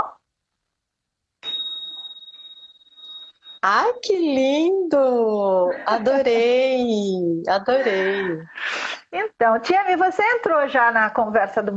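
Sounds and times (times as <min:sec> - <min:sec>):
bell being rung: 0:01.4 - 0:04.2
speech: 0:03.6 - 0:11.7.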